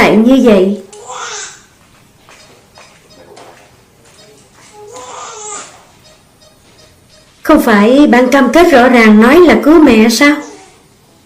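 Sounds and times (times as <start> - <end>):
speech: 0.2 - 0.9, 7.5 - 10.5
newborn baby whimpering and crying outside the delivery room: 0.9 - 1.8, 4.3 - 7.0.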